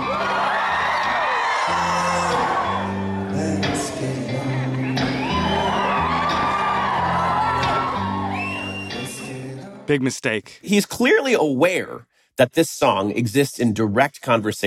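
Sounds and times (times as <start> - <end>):
concert crowd cheering and whooping at a pop show: 0.0 - 9.8
speech: 9.9 - 14.6.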